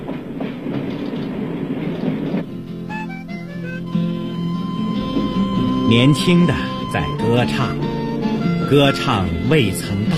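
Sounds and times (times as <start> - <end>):
international train running on rails near Basel: 0.0 - 7.0
steady sustained tones: 2.7 - 10.1
speech: 5.9 - 7.8, 8.7 - 10.1.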